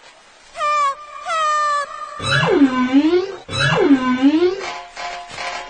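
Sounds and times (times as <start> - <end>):
humpback whale call: 0.6 - 4.7
speech: 2.2 - 3.2.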